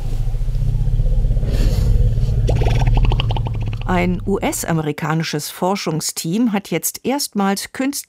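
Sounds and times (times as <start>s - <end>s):
wild African elephants' greeting rumbles: 0.0s - 4.8s
speech: 3.9s - 8.0s.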